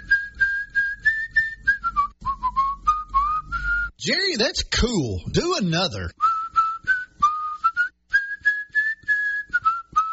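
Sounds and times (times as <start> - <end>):
person whistling a melody: 0.0 - 4.0, 6.2 - 10.1
speech: 4.0 - 6.2.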